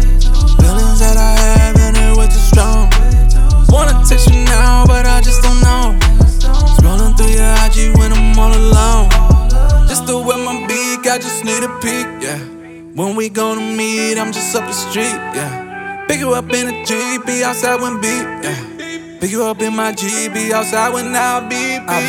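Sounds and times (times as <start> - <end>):
autotuned hip hop music: 0.0 - 22.0.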